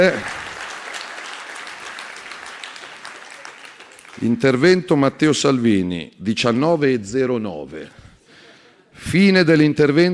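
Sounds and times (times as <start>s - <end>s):
speech: 0.0s - 0.4s, 4.2s - 8.0s, 9.0s - 10.1s
crowd applauding: 0.0s - 4.8s.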